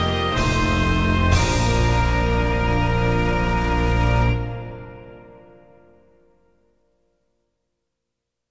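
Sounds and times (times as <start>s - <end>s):
orchestrated national anthem accompaniment in B flat: 0.0s - 6.2s.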